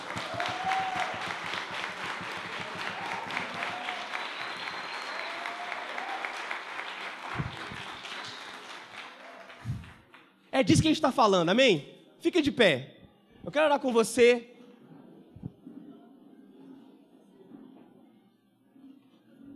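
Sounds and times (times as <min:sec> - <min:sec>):
audience applause: 0:00.0 - 0:10.3
speech: 0:10.6 - 0:14.5.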